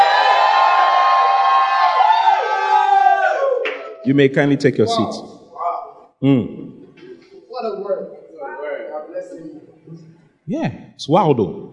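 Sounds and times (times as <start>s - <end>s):
high whoops: 0.0s - 4.0s
audience shouting and cheering: 0.0s - 4.1s
speech: 4.0s - 5.3s, 6.2s - 6.8s, 10.5s - 11.6s.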